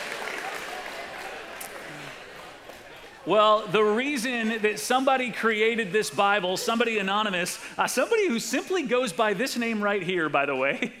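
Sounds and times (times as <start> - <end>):
audience applause: 0.0 - 3.6
speech: 3.2 - 10.9.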